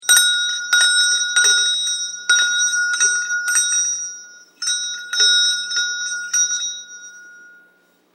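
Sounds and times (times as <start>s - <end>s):
Indian bells in Hyderabad: 0.0s - 8.1s.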